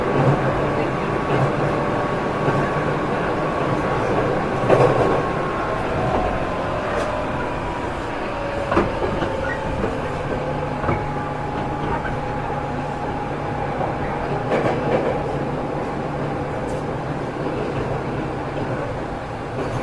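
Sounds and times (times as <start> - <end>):
Saikyo Kawagoe 205 train: 0.0 - 19.8.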